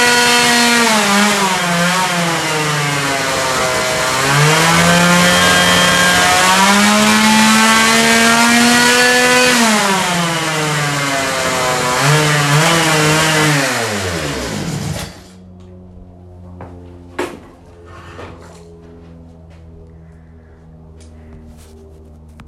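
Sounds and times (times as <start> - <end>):
motorcycle starting and accelerating: 0.0 - 16.6.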